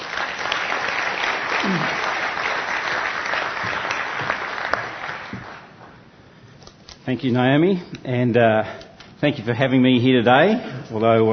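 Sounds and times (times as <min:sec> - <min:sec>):
crowd applauding: 0:00.0 - 0:05.9
speech: 0:07.1 - 0:11.3.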